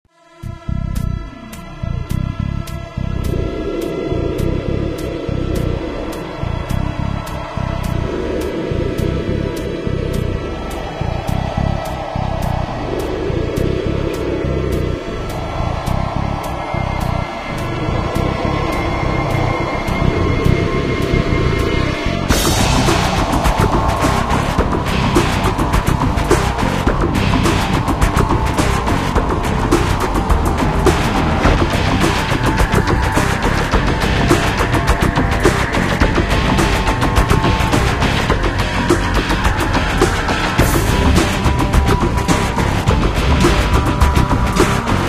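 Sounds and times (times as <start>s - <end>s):
nuclear tech rock music: 0.3s - 45.0s.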